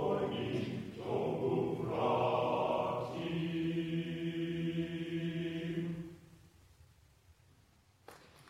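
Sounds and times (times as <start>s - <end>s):
glee club singing Slovak folk song: 0.0s - 6.3s.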